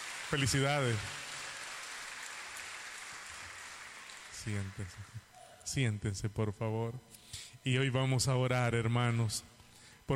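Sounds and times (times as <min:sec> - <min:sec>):
crowd applause: 0:00.0 - 0:05.3
speech: 0:00.3 - 0:01.2, 0:04.4 - 0:10.1.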